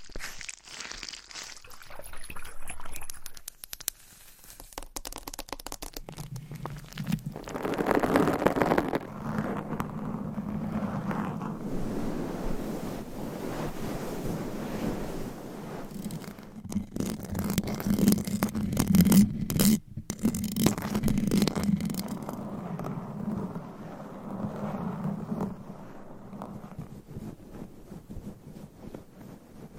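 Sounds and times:
scratching: 0:03.1 - 0:29.7
rubbing: 0:04.0 - 0:29.7.

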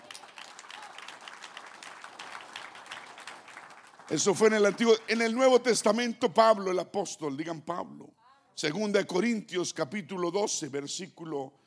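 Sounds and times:
audience applause: 0:00.0 - 0:05.4
speech: 0:04.1 - 0:11.6.

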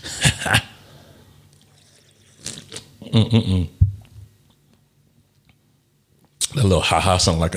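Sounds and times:
speech: 0:00.4 - 0:00.7, 0:03.1 - 0:03.8, 0:06.6 - 0:07.5
sipping beer: 0:01.5 - 0:03.0.

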